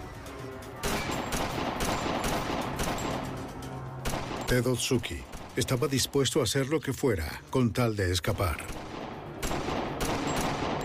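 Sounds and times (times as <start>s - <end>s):
gunfire shootout: 0.8s - 3.4s, 4.0s - 5.8s, 8.7s - 10.8s
speech: 4.5s - 8.8s.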